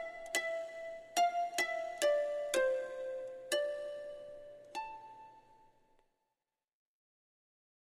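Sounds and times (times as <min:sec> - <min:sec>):
psaltery playing: 0:00.0 - 0:05.7.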